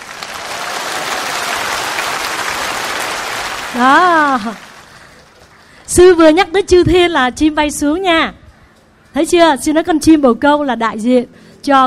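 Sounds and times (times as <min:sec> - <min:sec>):
audience applause: 0:00.0 - 0:05.7
speech: 0:03.8 - 0:04.7, 0:05.9 - 0:08.4, 0:09.2 - 0:11.8.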